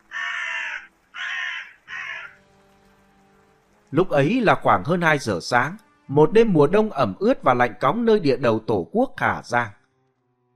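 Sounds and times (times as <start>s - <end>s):
black crow cawing while taking off into the sky: 0.0s - 2.4s
speech: 3.9s - 9.8s.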